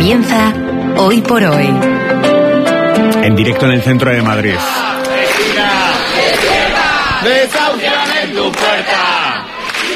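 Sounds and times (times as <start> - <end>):
speech: 0.1 - 2.2, 3.2 - 4.9, 7.2 - 9.4
large protest crowd chanting outside a building: 4.5 - 9.9.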